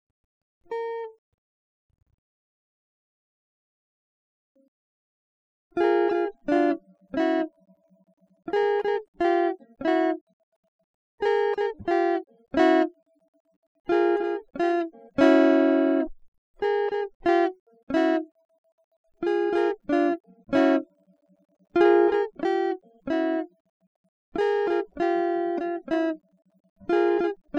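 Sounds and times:
guitar: 0.7 - 1.2, 5.7 - 10.3, 11.2 - 13.0, 13.9 - 18.4, 19.2 - 23.6, 24.3 - 27.5.

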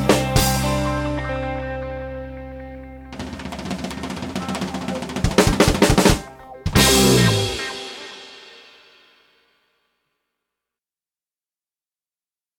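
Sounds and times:
hot chocolate and rum holiday music mix: 0.0 - 9.6.

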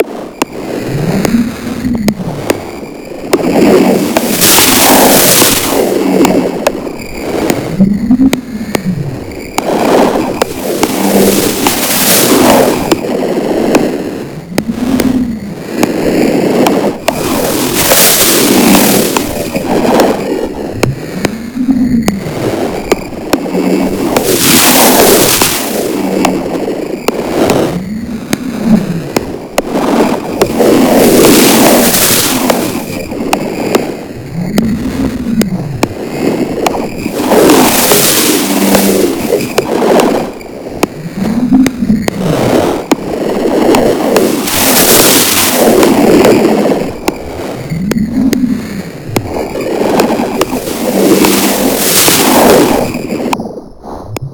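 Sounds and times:
zone ambience: 0.0 - 54.3.

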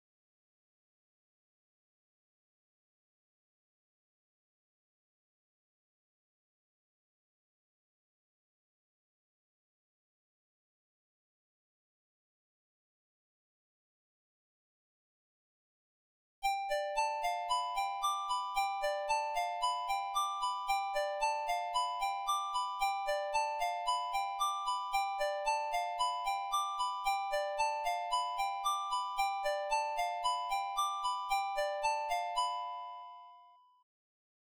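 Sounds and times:
melody: 16.6 - 33.2.

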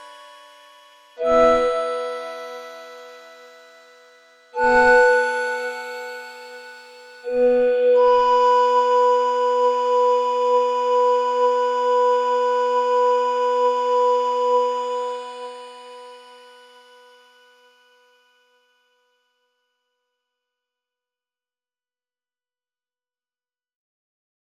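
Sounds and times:
90 synth: 0.0 - 17.9.

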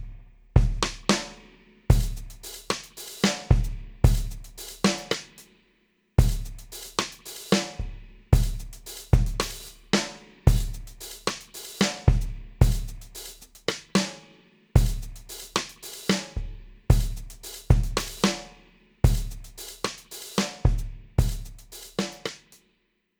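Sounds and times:
rhythm guitar: 0.6 - 5.4, 6.2 - 14.2, 16.9 - 22.5.

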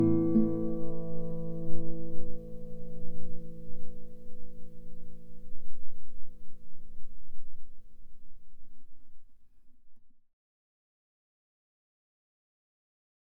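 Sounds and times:
guitar: 0.0 - 5.6.

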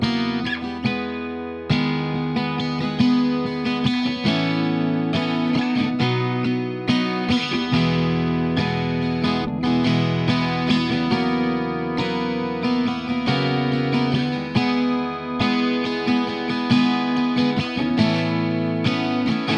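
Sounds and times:
guitar improvisation: 0.0 - 19.5.

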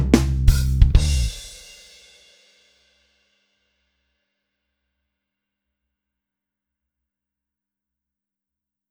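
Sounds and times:
funky rave music: 0.0 - 1.5.

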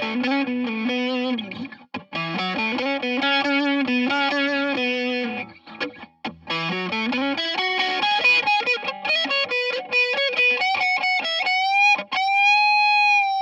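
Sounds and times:
guitar improvisation: 0.0 - 13.4.

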